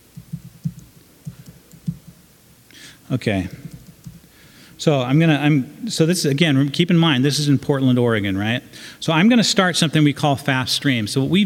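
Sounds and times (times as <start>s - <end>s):
typing a password on a computer keyboard: 0.0s - 2.2s, 3.6s - 4.2s
speech: 3.1s - 3.6s, 4.8s - 11.4s.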